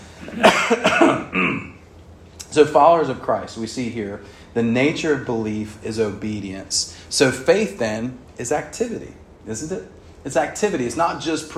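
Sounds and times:
man coughing harshly to clear his throat: 0.1 - 1.8
speech: 0.3 - 1.0, 2.6 - 11.5.

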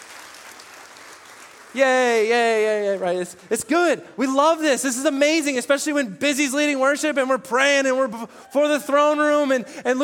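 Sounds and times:
church congregation clapping: 0.0 - 3.7
speech: 1.7 - 10.0.

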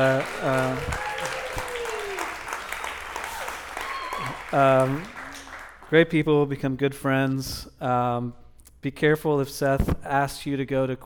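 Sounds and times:
speech: 0.0 - 1.0, 4.5 - 5.2, 5.9 - 11.0
audience applause: 0.0 - 6.0.

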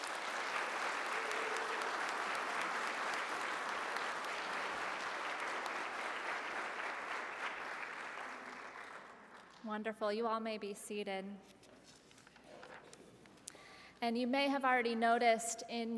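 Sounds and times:
church audience applause: 0.0 - 9.5
speech: 9.6 - 11.7, 14.0 - 15.9.

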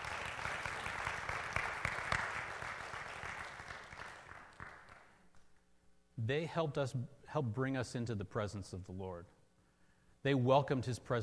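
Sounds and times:
audience applauding the worship team: 0.0 - 5.2
speech: 6.3 - 9.4, 10.2 - 11.2.

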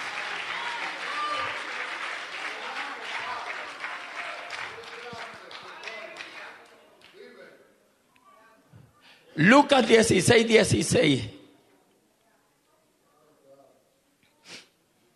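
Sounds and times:
audience applause: 0.0 - 6.6
speech: 9.4 - 11.4.

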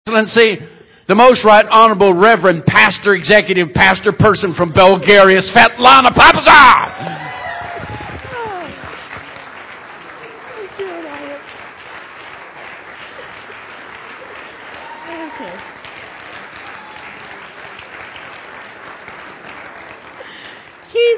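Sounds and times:
speech: 0.1 - 7.2
audience clapping: 6.3 - 21.1.

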